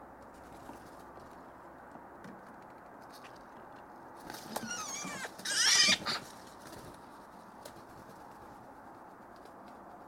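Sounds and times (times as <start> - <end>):
Pica pica: 4.5 - 6.3.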